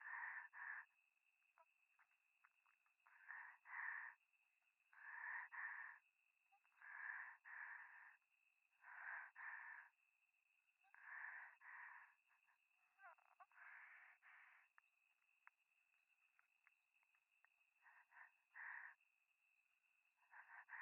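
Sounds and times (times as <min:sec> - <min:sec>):
breathing close to the left ear at night in the mountains: 0:00.0 - 0:00.9, 0:02.4 - 0:04.3, 0:04.9 - 0:06.0, 0:06.7 - 0:10.0, 0:10.9 - 0:15.0, 0:17.8 - 0:19.0, 0:20.2 - 0:20.8.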